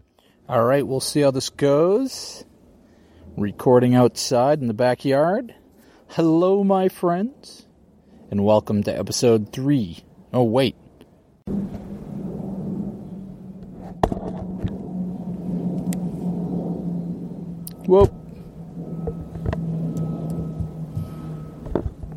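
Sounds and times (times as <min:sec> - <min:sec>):
airplane flying overhead: 0:00.0 - 0:22.1
speech: 0:00.5 - 0:02.5, 0:03.4 - 0:07.6, 0:08.3 - 0:10.8, 0:11.5 - 0:11.8, 0:17.9 - 0:18.1.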